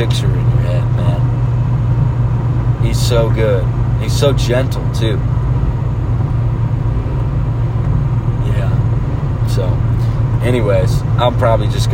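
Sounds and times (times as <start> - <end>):
speech: 0.0 - 0.5, 2.9 - 5.4, 10.4 - 11.9
car engine and road rumble heard from inside: 0.0 - 11.9.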